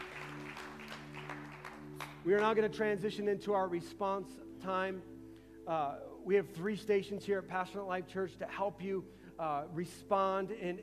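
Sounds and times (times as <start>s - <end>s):
audience hand clapping: 0.0s - 2.7s
speech: 2.2s - 10.8s.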